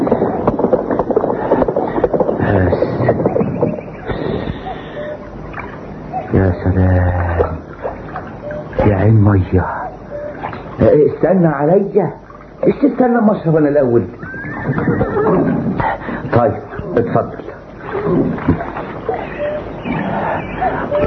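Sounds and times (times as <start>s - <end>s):
horse hooves clip-clopping at a walking pace in open country: 0.0s - 3.8s
wind: 0.0s - 21.0s
speech: 11.2s - 15.7s, 16.4s - 18.7s.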